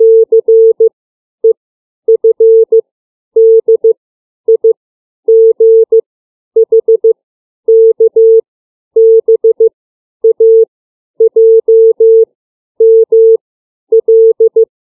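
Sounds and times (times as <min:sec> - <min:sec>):
CW Morse code beeps of the alphabet: 0:00.0 - 0:00.9, 0:02.1 - 0:02.8, 0:03.4 - 0:03.9, 0:05.3 - 0:06.0, 0:06.6 - 0:08.4, 0:09.0 - 0:10.6, 0:11.2 - 0:14.7.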